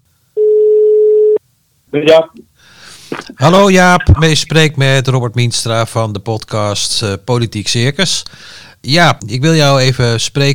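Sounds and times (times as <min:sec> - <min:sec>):
telephone ringback tone while calling: 0:00.4 - 0:01.4
speech: 0:01.9 - 0:02.5, 0:03.2 - 0:10.5.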